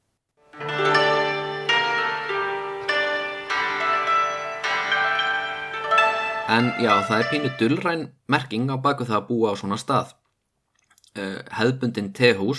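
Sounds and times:
koto Japanese harp being played: 0:00.5 - 0:07.8
speech: 0:06.5 - 0:10.2, 0:11.2 - 0:12.5.

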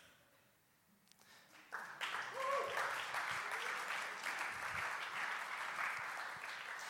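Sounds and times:
crowd applauding: 0:01.5 - 0:06.8.

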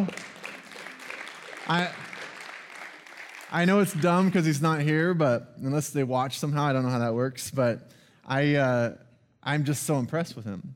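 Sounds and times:
audience clapping: 0:00.0 - 0:04.9
speech: 0:01.7 - 0:02.0, 0:03.5 - 0:10.7.

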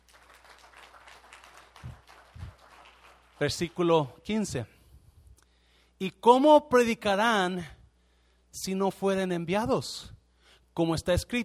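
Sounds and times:
audience applauding: 0:00.0 - 0:03.9
speech: 0:03.4 - 0:04.8, 0:06.0 - 0:07.8, 0:08.5 - 0:10.1, 0:10.8 - 0:11.4.

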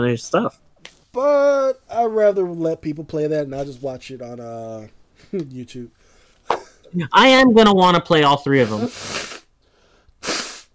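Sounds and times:
speech: 0:00.0 - 0:06.1, 0:06.9 - 0:09.2
person blowing nose: 0:08.6 - 0:09.6, 0:10.2 - 0:10.7.

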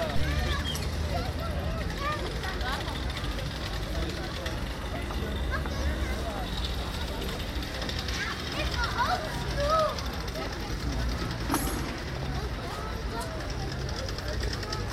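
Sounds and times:
low traffic rumble: 0:00.0 - 0:14.9
murmur of voices on café terraces at the Grote Markt in The Hague: 0:00.0 - 0:14.9
brief clinks: 0:11.3 - 0:12.5.

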